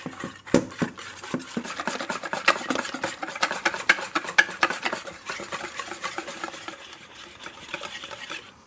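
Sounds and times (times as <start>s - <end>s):
whisking batter in a bowl: 0.0s - 8.6s.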